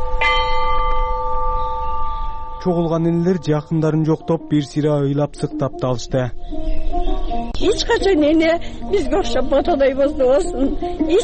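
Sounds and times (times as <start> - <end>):
peace bell struck at a memorial ceremony in Osh: 0.0 - 5.2
speech: 2.6 - 6.7, 7.6 - 11.2.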